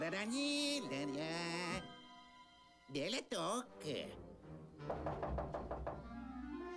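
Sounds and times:
speech: 0.1s - 1.5s, 2.9s - 5.2s
knocking: 4.8s - 6.2s.

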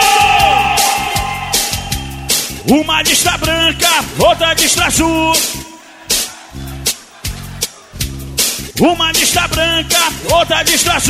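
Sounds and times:
loud crowd of Paysandu football fans shouting and roaring: 0.0s - 2.6s, 5.3s - 8.0s
speech: 2.6s - 5.7s, 8.8s - 11.0s
laughter: 5.1s - 8.6s.

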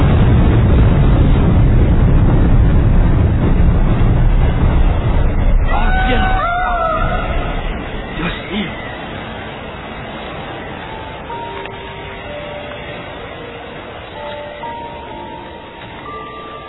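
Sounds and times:
huge ship explosion of the Mercurial Margaret: 0.0s - 10.8s.

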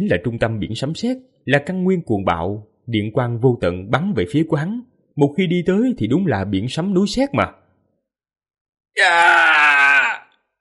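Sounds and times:
speech: 0.0s - 7.6s, 9.0s - 9.8s
man screaming in pain while burned by lightning tribulation: 9.0s - 10.4s.

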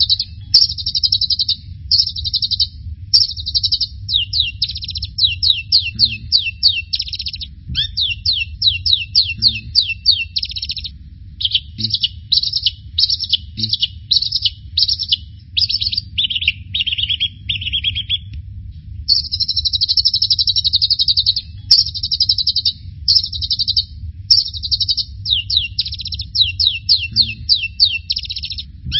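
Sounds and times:
bird singing: 0.0s - 18.3s, 19.1s - 28.9s.

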